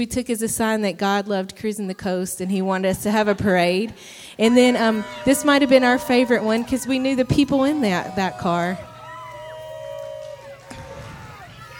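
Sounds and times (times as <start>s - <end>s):
speech: 0.0s - 8.9s
parade crowd yelling a name: 4.4s - 11.7s.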